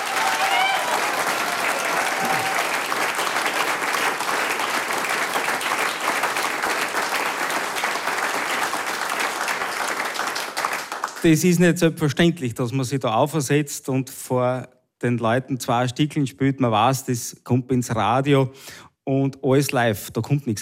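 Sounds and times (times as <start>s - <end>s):
audience applause for a live performance: 0.0s - 11.4s
speech: 11.2s - 20.6s.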